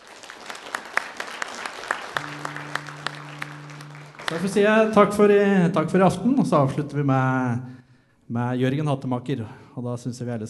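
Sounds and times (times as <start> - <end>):
audience clapping: 0.0 - 5.3
low sustained tone: 2.2 - 5.2
speech: 4.3 - 10.4.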